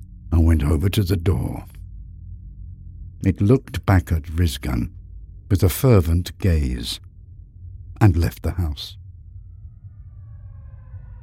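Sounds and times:
speech: 0.4 - 1.8, 3.2 - 7.1, 8.0 - 9.0
sirens: 10.0 - 11.2.

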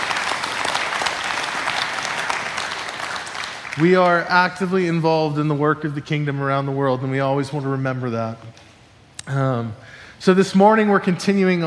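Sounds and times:
applause: 0.0 - 5.0
speech: 3.8 - 8.6, 9.3 - 11.6.

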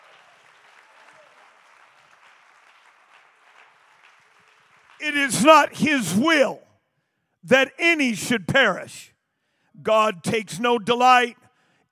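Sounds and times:
audience clapping hands: 0.0 - 6.0
speech: 5.0 - 6.6, 7.4 - 9.1, 9.8 - 11.9.

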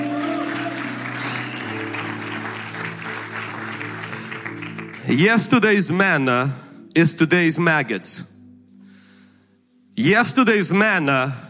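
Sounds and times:
audience clapping: 0.0 - 5.5
speech: 5.1 - 8.3, 10.0 - 11.4.

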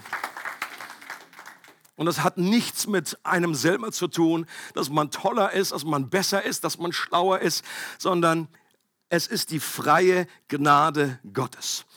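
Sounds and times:
audience applause: 0.0 - 1.9
speech: 2.0 - 11.9.

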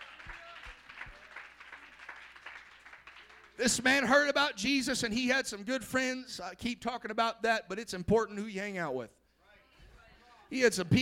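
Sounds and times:
audience clapping: 0.0 - 4.0
speech: 3.6 - 9.2, 10.5 - 11.0.

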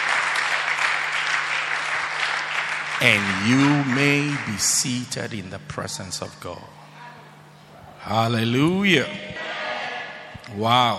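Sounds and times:
audience clapping hands: 0.0 - 5.2
speech: 3.0 - 6.8, 8.1 - 9.4, 10.5 - 10.9.

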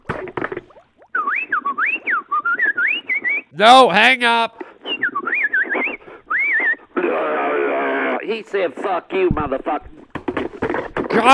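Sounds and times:
voice imitating R2-D2 droid noises from Star Wars: 1.1 - 3.6, 4.8 - 8.1
speech: 3.6 - 4.6, 8.3 - 9.9, 11.1 - 11.3.

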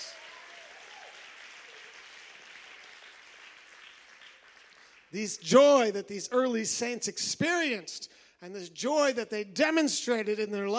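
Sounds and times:
audience clapping hands: 0.0 - 5.3
speech: 5.1 - 10.7.

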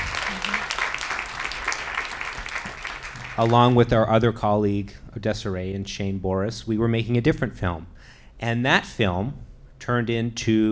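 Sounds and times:
crowd applause: 0.0 - 3.8
speech: 3.4 - 10.7.

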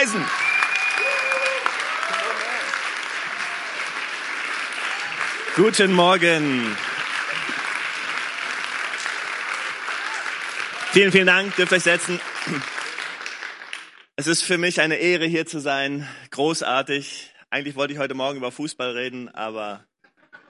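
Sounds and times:
audience applause: 0.0 - 14.1
speech: 0.1 - 1.1, 5.6 - 6.8, 10.9 - 12.8, 14.2 - 19.9.

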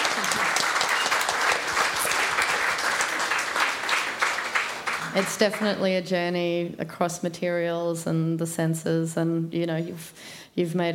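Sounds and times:
round of applause: 0.0 - 5.9
speech: 5.2 - 10.9.

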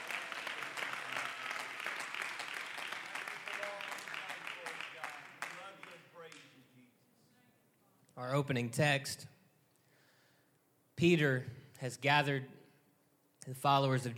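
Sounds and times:
audience hand clapping: 0.0 - 6.4
speech: 8.2 - 9.4, 11.0 - 12.6, 13.5 - 14.1.

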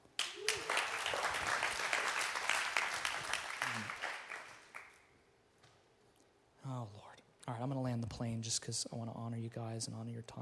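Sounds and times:
audience applause: 0.1 - 5.0
speech: 7.6 - 10.4.

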